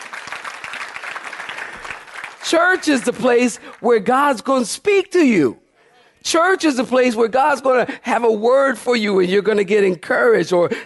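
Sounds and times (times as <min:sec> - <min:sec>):
audience clapping hands: 0:00.0 - 0:03.9
speech: 0:02.4 - 0:05.6, 0:06.2 - 0:10.8.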